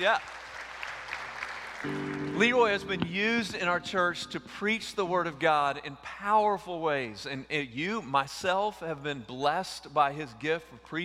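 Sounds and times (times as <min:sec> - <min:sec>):
speech: 0:00.0 - 0:00.4, 0:01.8 - 0:11.0
audience applause: 0:00.0 - 0:02.4.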